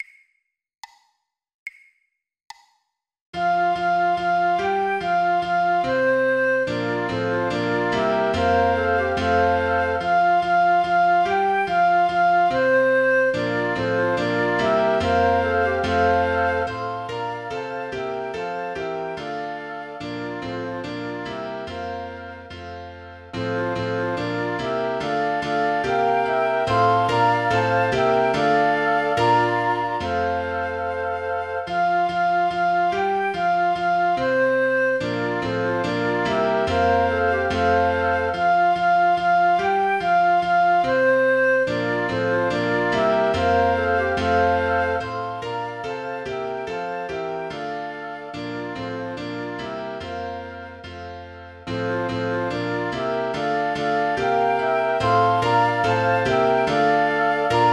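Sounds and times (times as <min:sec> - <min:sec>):
flute: 0:03.4 - 0:57.7
piano: 0:03.4 - 0:57.7.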